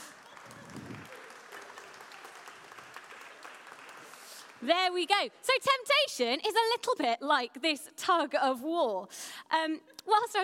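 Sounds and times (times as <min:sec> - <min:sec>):
audience applause: 0:00.0 - 0:04.6
speech: 0:04.6 - 0:10.4.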